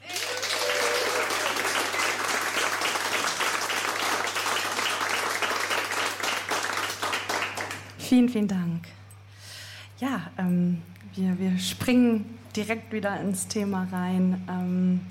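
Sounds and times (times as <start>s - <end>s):
audience applause: 0.0s - 8.0s
speech: 8.1s - 9.0s, 10.0s - 15.0s.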